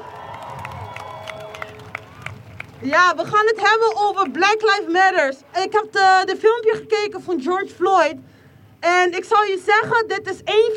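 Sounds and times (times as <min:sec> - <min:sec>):
crowd cheering and applauding: 0:00.0 - 0:02.8
speech: 0:02.8 - 0:10.7.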